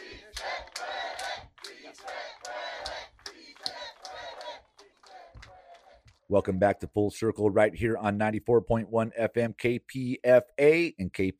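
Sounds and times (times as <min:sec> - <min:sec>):
crowd chanting at the kickoff of a march to Sacramento: 0:00.0 - 0:06.1
speech: 0:06.3 - 0:11.3.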